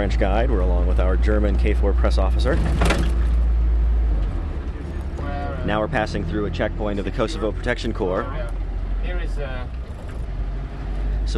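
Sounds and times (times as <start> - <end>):
speech: 0.0 - 3.3, 5.6 - 9.8
KFOR military Jeep engine and road rumble driving through Mitrovica, Kosovo: 0.0 - 11.3.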